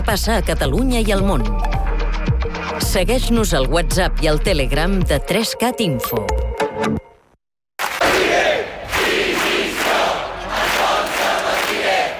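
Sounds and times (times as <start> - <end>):
speech: 0.1 - 1.7, 2.8 - 7.0
protest crowd shouting chants in Palma against police charges: 8.0 - 12.1.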